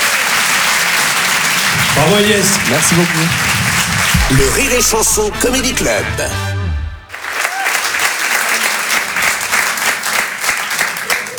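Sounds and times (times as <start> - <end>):
comedy club audience applause: 0.0 - 6.4, 7.0 - 11.3
speech: 2.0 - 3.6, 4.3 - 6.5.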